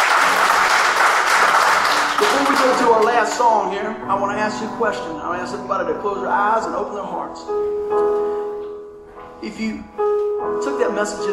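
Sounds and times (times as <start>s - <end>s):
room full of people clapping: 0.0s - 3.7s
speech: 2.6s - 8.4s, 9.4s - 11.3s.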